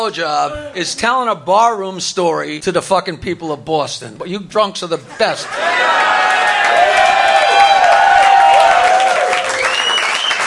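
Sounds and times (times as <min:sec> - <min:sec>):
speech: 0:00.0 - 0:06.1
audience cheering: 0:05.4 - 0:10.4
applause: 0:05.9 - 0:10.4.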